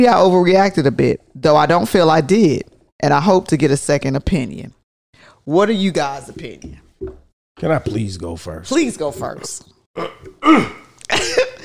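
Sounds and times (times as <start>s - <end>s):
speech: 0.0s - 4.8s, 5.5s - 11.5s
throat clearing: 10.0s - 11.5s.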